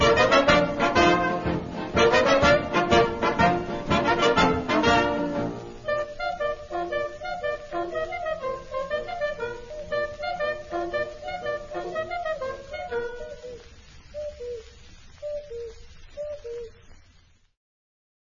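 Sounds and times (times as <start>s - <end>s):
orchestra: 0.0s - 13.6s.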